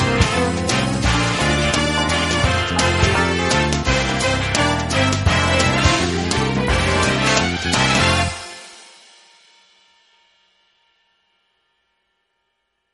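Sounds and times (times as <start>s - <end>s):
swing song: 0.0s - 8.8s.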